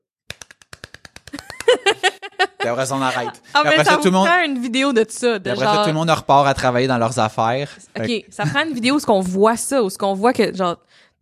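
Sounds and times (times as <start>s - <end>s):
group of people clapping very rapidly: 0.3s - 2.1s
laughter: 1.4s - 4.4s, 5.5s - 6.0s
speech: 2.6s - 11.2s.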